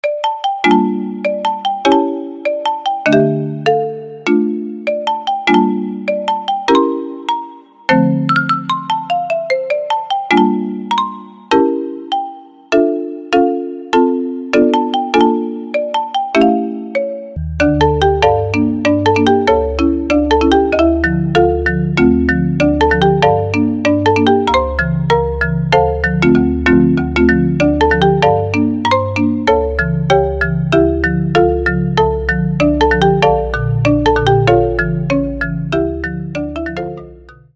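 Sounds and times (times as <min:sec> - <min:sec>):
marimba: 0:00.0 - 0:37.5.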